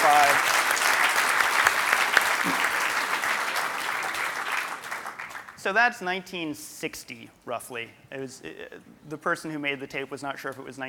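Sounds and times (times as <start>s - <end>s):
audience applause: 0.0s - 5.6s
speech: 5.7s - 10.8s.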